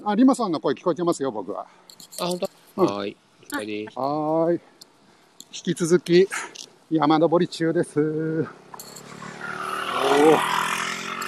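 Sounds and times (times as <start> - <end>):
speech: 0.0 - 4.7, 5.5 - 8.6, 10.2 - 10.7
motorcycle passing by: 8.0 - 11.2.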